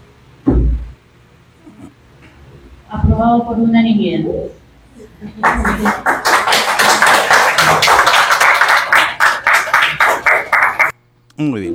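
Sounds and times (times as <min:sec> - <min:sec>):
laughter: 0:01.6 - 0:11.7
speech: 0:02.9 - 0:04.6, 0:05.2 - 0:06.4, 0:11.4 - 0:11.7
audience applause after a council vote: 0:04.7 - 0:11.7.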